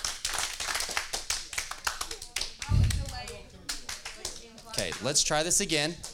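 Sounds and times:
group of people clapping: 0.0 - 6.1
speech: 4.8 - 6.1.

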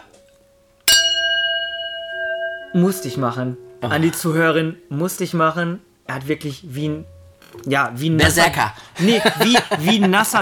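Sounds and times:
glasses clinking in a toast: 0.9 - 4.8
speech: 2.7 - 10.3
laughter: 9.0 - 10.3.

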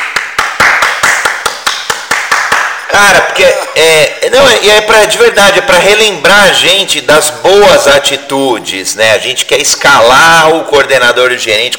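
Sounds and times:
hand claps: 0.0 - 2.9
speech: 3.0 - 11.7.

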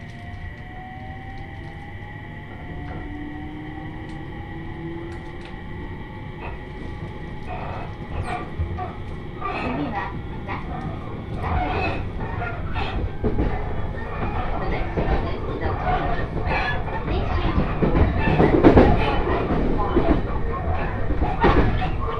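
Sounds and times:
Joban Line train rumble: 0.0 - 22.1.

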